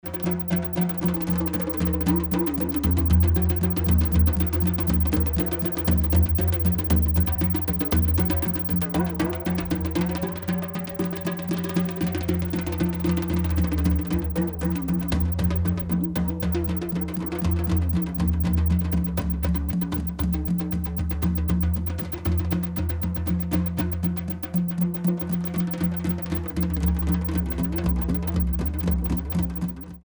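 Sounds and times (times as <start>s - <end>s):
drums: 0.0s - 30.0s.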